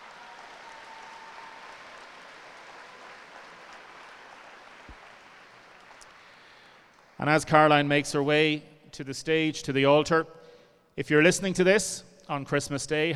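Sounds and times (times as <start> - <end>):
audience applause in a church: 0.0 - 7.2
speech: 7.2 - 10.4, 11.0 - 13.1.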